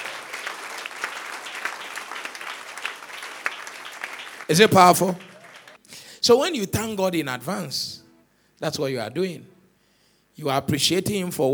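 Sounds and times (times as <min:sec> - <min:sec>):
audience clapping: 0:00.0 - 0:05.8
speech: 0:04.5 - 0:05.3, 0:06.3 - 0:08.0, 0:08.6 - 0:09.6, 0:10.4 - 0:11.5.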